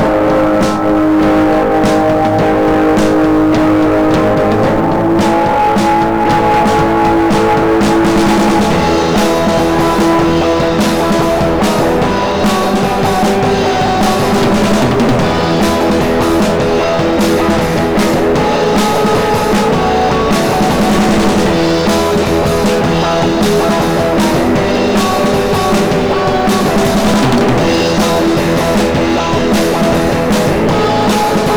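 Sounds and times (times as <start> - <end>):
overdriven monitor mix: 0.0 - 31.5.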